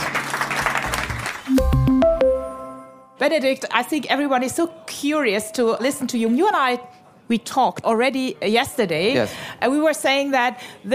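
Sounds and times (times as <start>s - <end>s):
audience applause: 0.0s - 1.9s
musical sting of bright sustained tones: 1.5s - 3.2s
speech: 3.2s - 10.9s.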